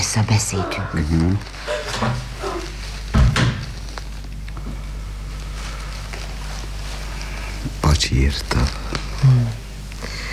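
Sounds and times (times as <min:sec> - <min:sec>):
faint hum: 0:00.0 - 0:10.3
speech: 0:00.1 - 0:02.2, 0:08.0 - 0:10.2
bedroom door pushed shut with a creak and thud: 0:00.6 - 0:04.1.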